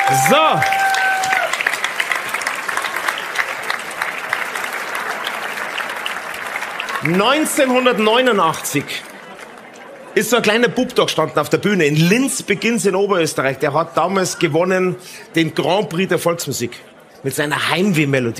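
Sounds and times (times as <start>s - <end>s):
live audience applause: 0.0s - 10.4s
speech: 0.1s - 0.8s, 7.0s - 9.1s, 10.1s - 18.3s.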